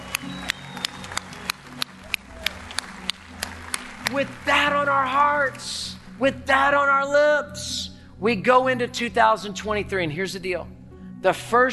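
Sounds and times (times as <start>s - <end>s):
audience cheering: 0.0s - 5.7s
speech: 4.1s - 11.7s.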